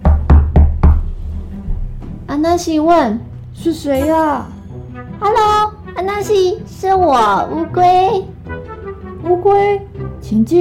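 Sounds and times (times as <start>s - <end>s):
knocking on a door: 0.0s - 2.3s
speech: 2.3s - 4.6s, 6.1s - 8.3s, 9.2s - 10.5s.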